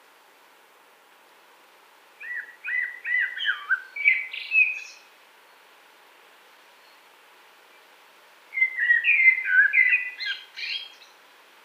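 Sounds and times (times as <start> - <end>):
Eurasian blackbird singing: 2.2 - 5.1, 8.5 - 11.2.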